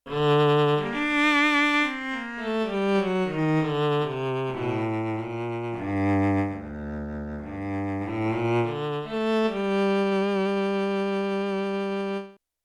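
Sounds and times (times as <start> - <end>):
cello: 0.1 - 12.4.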